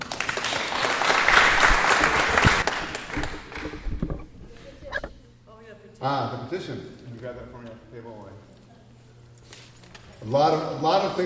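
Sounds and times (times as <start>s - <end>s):
audience applause: 0.0s - 3.9s
speech: 6.0s - 8.6s, 10.2s - 11.2s.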